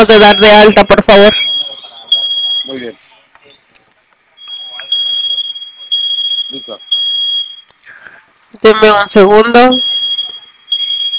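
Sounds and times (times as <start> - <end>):
speech: 0.0 - 1.5, 2.7 - 3.0, 8.6 - 9.9
alarm panel piercing high-pitched tone after its two flame buttons are pressed: 0.0 - 2.9, 4.4 - 7.7, 9.5 - 11.1.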